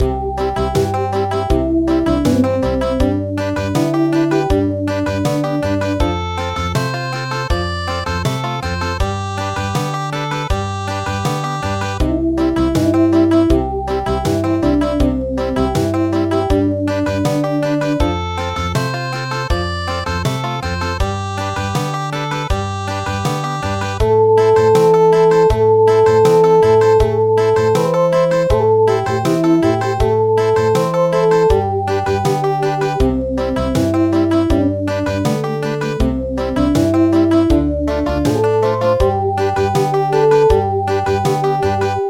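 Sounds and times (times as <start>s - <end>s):
country midi music: 0.0s - 42.0s.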